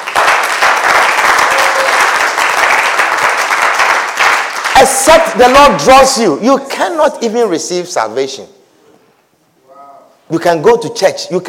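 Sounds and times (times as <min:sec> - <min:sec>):
audience applauding: 0:00.0 - 0:05.3
speech: 0:04.8 - 0:08.6, 0:10.3 - 0:11.4.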